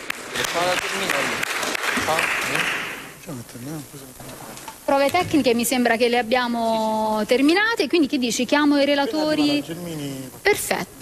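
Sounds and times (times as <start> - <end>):
audience applause: 0.0 - 3.2
speech: 0.6 - 1.4, 2.1 - 11.0.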